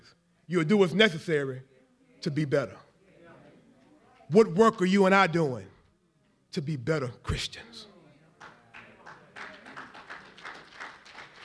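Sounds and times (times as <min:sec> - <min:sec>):
speech: 0:00.5 - 0:02.8, 0:04.3 - 0:05.7, 0:06.5 - 0:07.9
audience applause: 0:08.7 - 0:11.4.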